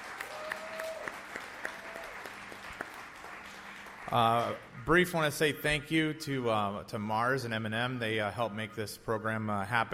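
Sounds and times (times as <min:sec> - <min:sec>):
audience applause: 0:00.0 - 0:04.8
speech: 0:04.1 - 0:09.9.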